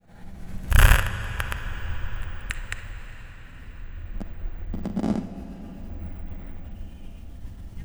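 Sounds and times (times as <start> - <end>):
strange cave ambience: 0.3 - 5.5.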